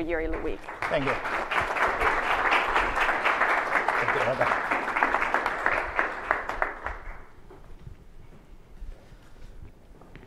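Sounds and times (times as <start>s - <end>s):
speech: 0.0s - 1.6s, 4.0s - 4.9s
audience applause: 0.2s - 7.4s.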